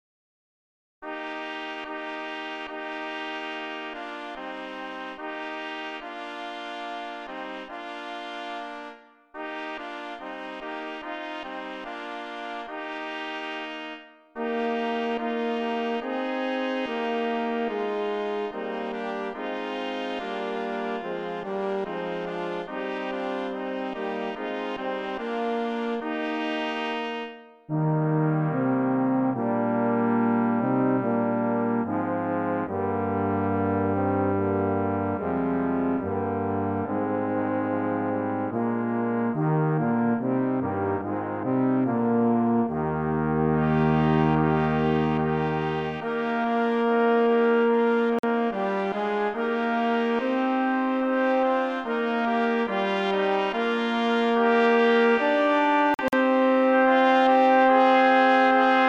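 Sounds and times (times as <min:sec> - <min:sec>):
brass ensemble playing: 0:01.0 - 0:58.8.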